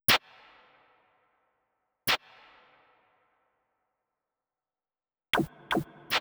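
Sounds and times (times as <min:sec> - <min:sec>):
nu jazz house drum effects at 120 BPM: 0:05.4 - 0:06.1.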